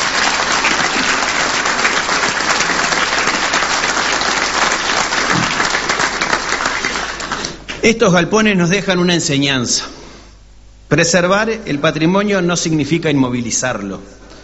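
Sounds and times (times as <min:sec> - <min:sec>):
audience applause: 0:00.0 - 0:07.6
speech: 0:07.8 - 0:10.0, 0:10.9 - 0:14.2.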